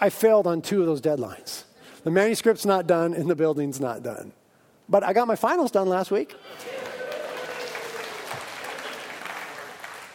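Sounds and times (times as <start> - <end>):
speech: 0.0 - 6.9
audience applause: 6.5 - 10.1.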